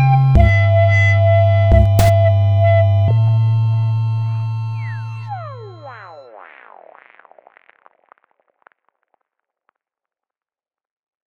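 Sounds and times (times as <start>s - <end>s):
sine wave tone: 0.0s - 7.7s.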